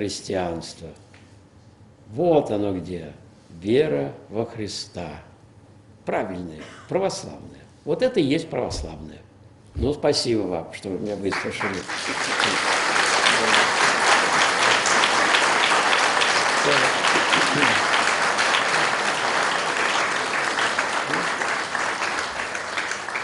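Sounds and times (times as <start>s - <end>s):
speech: 0.0s - 1.1s, 2.1s - 5.3s, 6.1s - 12.8s
audience clapping: 11.2s - 23.2s.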